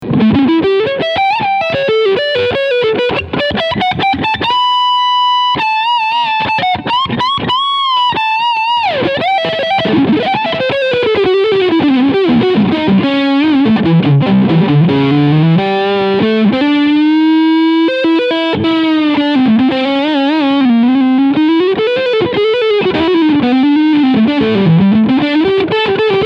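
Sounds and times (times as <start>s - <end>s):
PRS SE Mira electric guitar with overdrive in humbucker mode: 0.0s - 26.2s.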